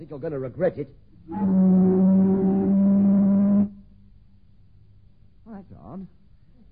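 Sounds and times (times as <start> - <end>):
speech: 0.0 - 1.9
ship's siren blast: 1.3 - 3.8.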